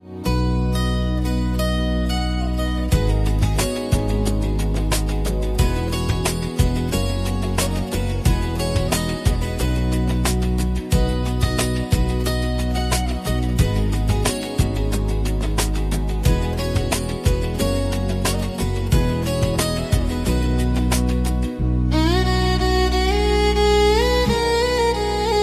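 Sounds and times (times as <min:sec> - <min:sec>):
background music: 0:00.0 - 0:25.4.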